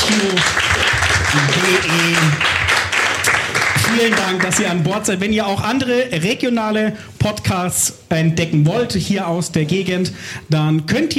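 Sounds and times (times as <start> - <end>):
loud applause: 0.0 - 4.9
speech: 0.1 - 0.6, 4.0 - 11.1.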